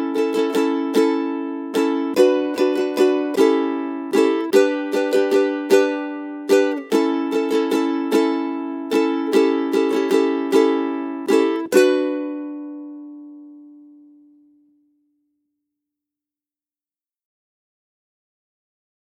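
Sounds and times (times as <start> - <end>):
ukulele rhythm study: 0.0 - 14.8.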